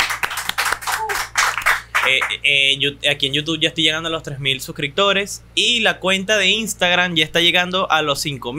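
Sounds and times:
hand clapping: 0.0 - 2.4
speech: 2.0 - 8.5.

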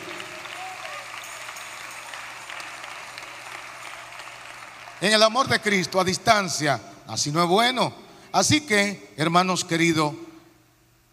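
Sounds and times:
audience applause: 0.0 - 5.8
speech: 5.0 - 10.2.

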